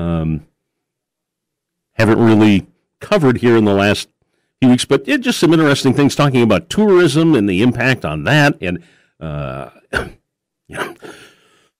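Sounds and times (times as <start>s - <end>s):
speech: 0.0s - 0.5s, 2.0s - 11.3s
person with a cold clearing throat: 9.6s - 11.4s
person with a cold coughing: 9.9s - 11.5s.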